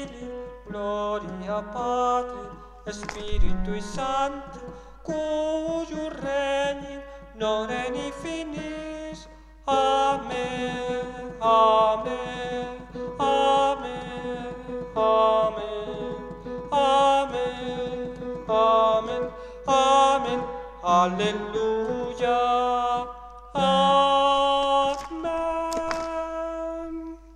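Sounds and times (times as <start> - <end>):
soprano singing: 0.0 - 27.3.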